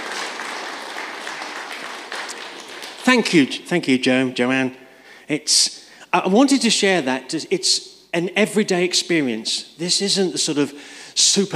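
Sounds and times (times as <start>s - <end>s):
audience applause: 0.0s - 3.4s
speech: 3.1s - 11.5s.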